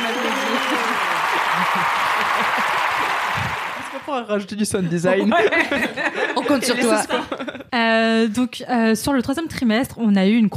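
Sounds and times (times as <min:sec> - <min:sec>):
laughter: 0:00.0 - 0:04.0, 0:04.9 - 0:07.7
group applause: 0:00.0 - 0:04.2
speech: 0:04.1 - 0:10.5.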